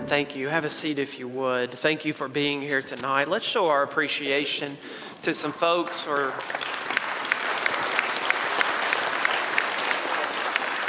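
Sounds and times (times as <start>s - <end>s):
speech: 0.1s - 6.9s
audience clapping: 5.3s - 10.8s.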